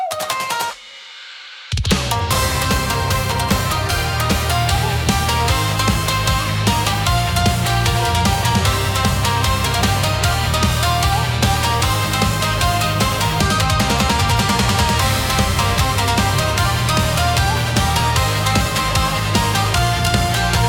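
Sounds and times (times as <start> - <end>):
intense Japanese rock music: 0.2 - 20.6.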